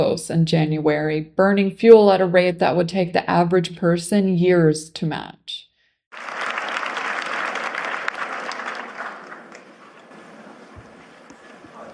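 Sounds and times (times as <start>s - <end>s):
speech: 0.0s - 6.4s
scattered audience clapping from a modest crowd: 6.1s - 11.9s.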